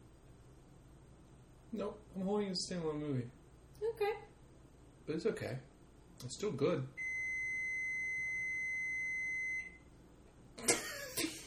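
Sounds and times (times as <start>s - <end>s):
speech: 1.7s - 4.3s, 5.0s - 7.0s
microwave oven beeping: 7.0s - 9.9s.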